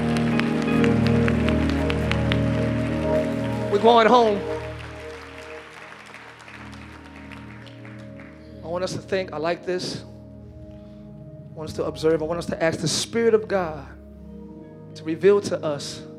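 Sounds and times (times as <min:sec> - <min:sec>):
audience clapping hands: 0:00.0 - 0:09.0
speech: 0:03.7 - 0:04.5, 0:08.8 - 0:10.1, 0:11.6 - 0:14.0, 0:15.0 - 0:16.1.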